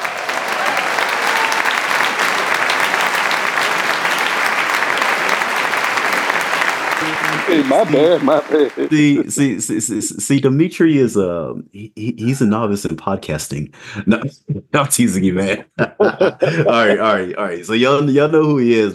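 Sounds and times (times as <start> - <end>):
added applause sound effect: 0.0 - 9.2
laughter: 3.3 - 9.3, 13.8 - 17.7
speech: 7.2 - 18.9.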